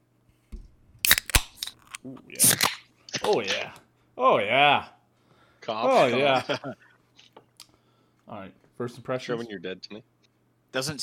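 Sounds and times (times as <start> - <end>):
lemon tea malt beverage can cracked open: 1.0 - 2.9
speech: 2.0 - 5.0, 5.6 - 6.8, 8.3 - 10.1, 10.7 - 11.0.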